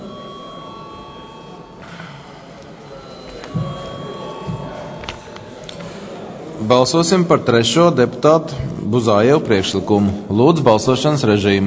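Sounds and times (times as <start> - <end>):
parliament chamber electric bell ringing: 0.0 - 6.7
speech: 6.6 - 11.6.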